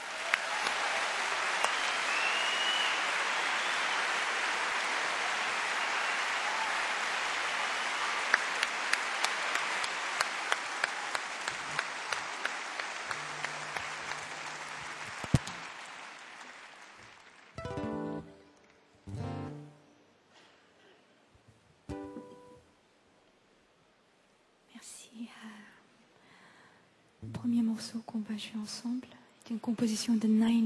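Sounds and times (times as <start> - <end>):
audience applause: 0.0 - 18.3
speech: 27.4 - 30.6.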